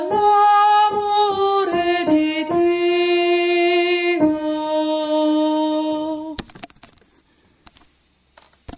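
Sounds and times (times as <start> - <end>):
sopranos singing: 0.0 - 6.4.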